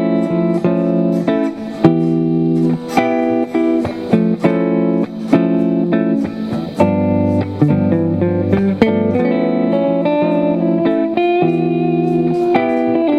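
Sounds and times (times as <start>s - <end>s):
melodic minor mode III play-along backing music: 0.0s - 13.1s.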